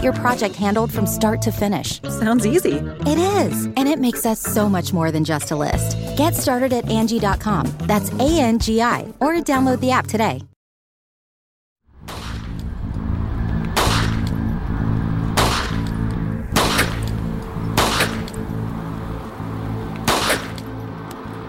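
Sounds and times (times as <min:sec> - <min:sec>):
speech: 0:00.0 - 0:10.5
low rumbling noise: 0:11.9 - 0:21.4
Desert Eagle pistol gunshots: 0:13.8 - 0:14.3, 0:15.4 - 0:15.9, 0:16.5 - 0:17.2, 0:17.8 - 0:18.4, 0:20.0 - 0:20.7.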